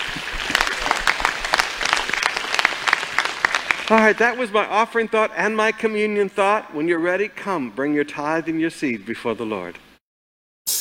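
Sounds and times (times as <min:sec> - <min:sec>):
audience applause: 0:00.0 - 0:04.4
speech: 0:03.9 - 0:09.8.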